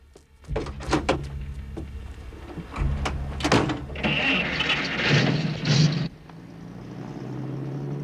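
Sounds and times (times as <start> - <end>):
truck engine starting and driving away: 0.0 - 8.0
truck door thunking shut: 0.5 - 6.1.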